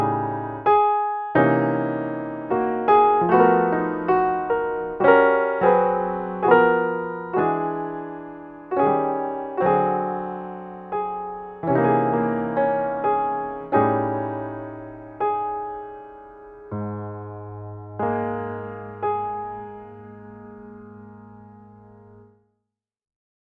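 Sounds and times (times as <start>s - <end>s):
solo piano: 0.0s - 22.5s.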